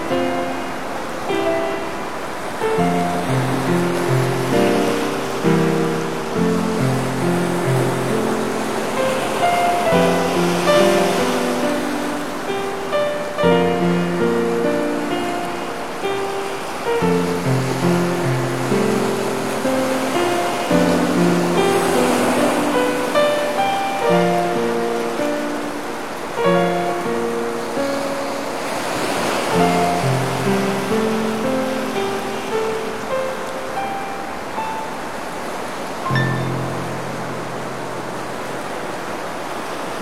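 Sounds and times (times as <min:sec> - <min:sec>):
sea and rain: 0:00.0 - 0:40.0.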